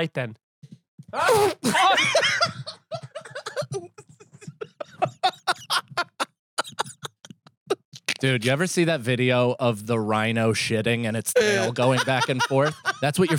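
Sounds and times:
speech: 0:00.0 - 0:00.4, 0:01.1 - 0:02.8, 0:08.2 - 0:13.3
person sneezing: 0:01.2 - 0:02.0
laughter: 0:01.7 - 0:07.5, 0:11.4 - 0:13.3.

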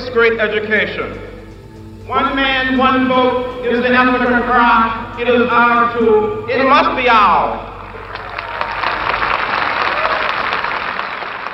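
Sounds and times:
speech: 0:00.1 - 0:01.4, 0:02.1 - 0:07.6
large crowd applause in the open air: 0:07.8 - 0:11.5.

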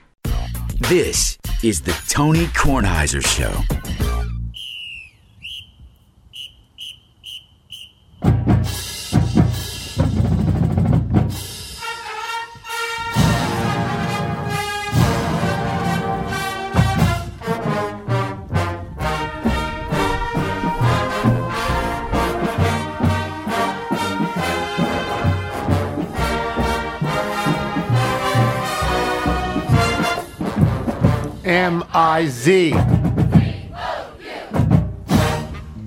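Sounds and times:
speech: 0:00.8 - 0:04.3, 0:32.2 - 0:33.0
marching band playing a jingle: 0:08.2 - 0:35.8.

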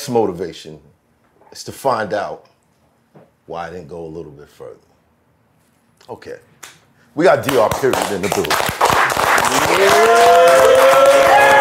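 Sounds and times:
speech: 0:00.0 - 0:02.5, 0:03.2 - 0:04.9, 0:06.0 - 0:06.5, 0:07.2 - 0:08.8, 0:09.5 - 0:11.0
crowd applause: 0:08.0 - 0:11.5
high-pitched cheer or whistle: 0:09.5 - 0:11.5.

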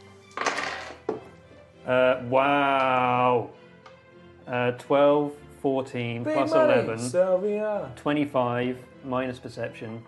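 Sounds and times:
dice clattering across a hard surface: 0:00.3 - 0:01.2
speech: 0:01.9 - 0:03.6, 0:04.5 - 0:10.0.

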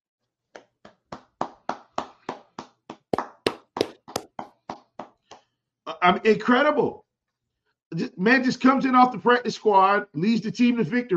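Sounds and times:
hands clapping: 0:00.6 - 0:05.5
speech: 0:06.0 - 0:07.0, 0:08.0 - 0:11.1.

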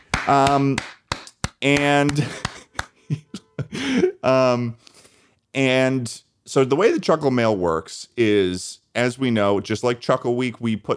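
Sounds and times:
sharp hand claps: 0:00.0 - 0:03.0
speech: 0:00.2 - 0:01.0, 0:01.6 - 0:02.4, 0:03.1 - 0:04.8, 0:05.5 - 0:10.9.

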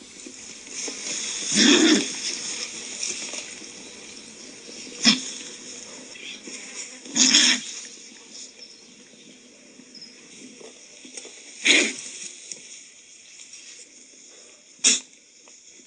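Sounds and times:
steady hiss of noise: 0:00.0 - 0:15.8
California condor hisses and snorts: 0:00.9 - 0:02.7, 0:05.0 - 0:07.9, 0:11.6 - 0:12.2.

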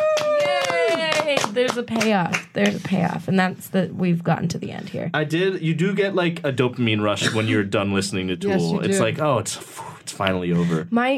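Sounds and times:
hosts clapping for themselves: 0:00.0 - 0:03.1
speech: 0:01.6 - 0:11.1.

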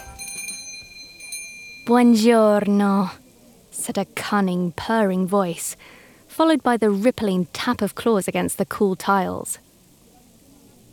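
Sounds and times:
shop door bell tinkling: 0:00.0 - 0:02.7
speech: 0:01.9 - 0:03.2, 0:03.8 - 0:09.6.

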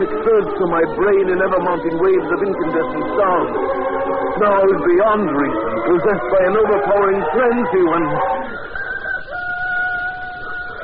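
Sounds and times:
speech: 0:00.2 - 0:08.6
rooster crowing: 0:08.2 - 0:10.8.

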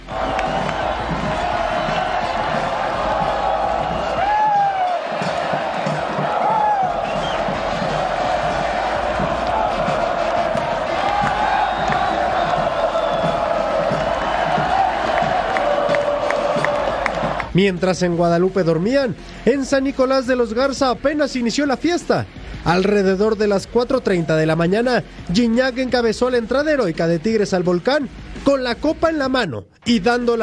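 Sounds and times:
whoops and shouts: 0:00.0 - 0:17.5
big stadium crowd of fans cheering: 0:00.0 - 0:18.8
speech: 0:17.6 - 0:30.4.

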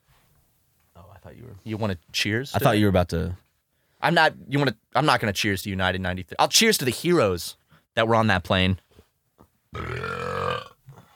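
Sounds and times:
speech: 0:01.2 - 0:03.4, 0:04.0 - 0:08.8, 0:09.7 - 0:10.2
soft breath: 0:03.6 - 0:04.0
long loud burp: 0:09.7 - 0:11.0.

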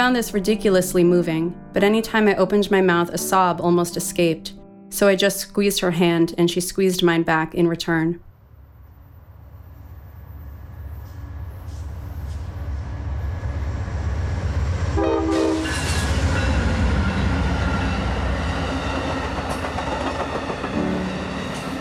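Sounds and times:
speech: 0:00.0 - 0:08.3
Amtrak train rolling with a heavy rumble and rattle: 0:09.2 - 0:21.7
Amtrak train horn blast: 0:14.9 - 0:18.2.

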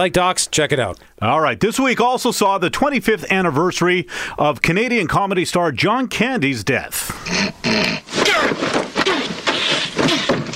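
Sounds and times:
speech: 0:00.0 - 0:08.8
loud snorting to clear sinuses: 0:07.1 - 0:10.5.

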